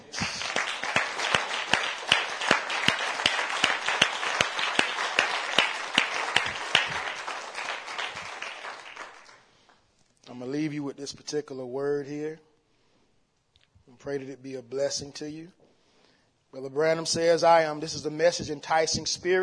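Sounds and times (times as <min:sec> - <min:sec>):
audience hand clap of praise: 0:00.0 - 0:09.8
speech: 0:11.3 - 0:12.5, 0:14.0 - 0:15.6, 0:16.6 - 0:19.4.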